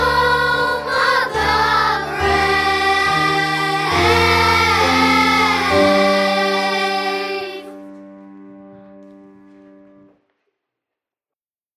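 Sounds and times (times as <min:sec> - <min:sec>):
soprano choir singing: 0:00.0 - 0:08.1.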